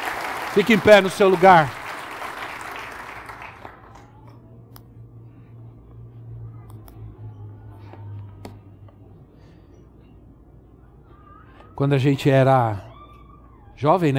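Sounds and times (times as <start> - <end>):
audience applauding: 0.0 - 4.1
speech: 0.5 - 1.8, 11.8 - 12.9, 13.8 - 14.1.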